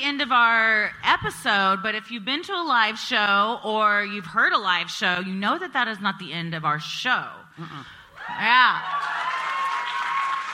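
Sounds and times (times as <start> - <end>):
speech: 0.0 - 9.3
live audience applause and cheering: 8.2 - 10.5.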